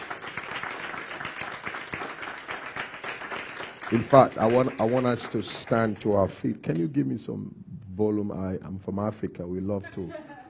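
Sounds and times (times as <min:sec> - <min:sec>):
audience clapping hands: 0:00.0 - 0:07.0
speech: 0:03.9 - 0:10.3.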